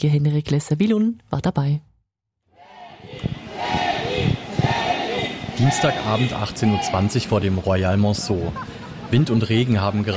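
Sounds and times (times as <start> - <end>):
speech: 0.0 - 1.9, 5.6 - 10.1
crowd of fans waiting outside hotel chattering and shouting: 2.6 - 7.6.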